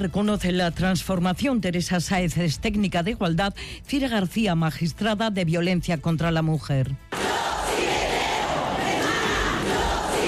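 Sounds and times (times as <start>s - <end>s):
speech: 0.0s - 7.1s
large crowd shouting and chanting: 7.1s - 10.2s.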